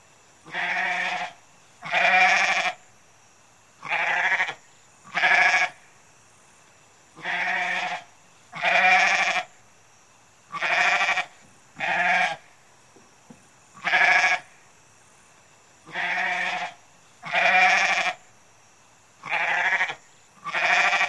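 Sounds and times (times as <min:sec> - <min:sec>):
goat bleating: 0:00.5 - 0:02.8, 0:05.2 - 0:05.7, 0:07.2 - 0:08.0, 0:08.6 - 0:09.5, 0:10.6 - 0:12.4, 0:13.8 - 0:14.4, 0:15.9 - 0:18.2, 0:19.2 - 0:21.0.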